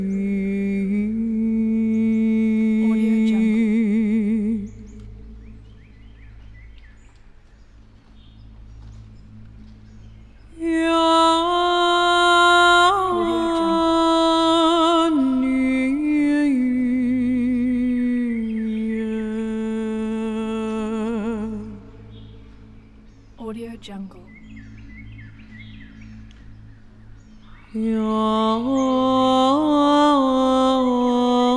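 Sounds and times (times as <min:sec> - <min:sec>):
shamanic woman chanting in the forest: 0:00.0 - 0:05.3, 0:10.6 - 0:22.1, 0:23.4 - 0:24.4, 0:27.7 - 0:31.5.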